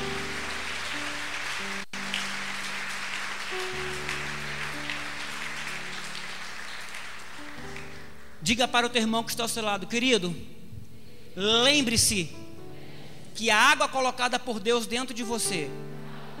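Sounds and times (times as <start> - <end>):
audience applauding loudly: 0.0 - 8.4
sustained organ-like chords: 0.0 - 9.0
speech: 8.5 - 10.6, 11.4 - 12.4, 13.4 - 15.9.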